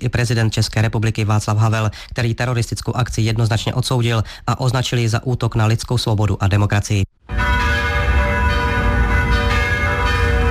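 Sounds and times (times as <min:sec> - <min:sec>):
speech: 0:00.0 - 0:07.4
church bells of all Prague churches ringing: 0:07.2 - 0:10.4.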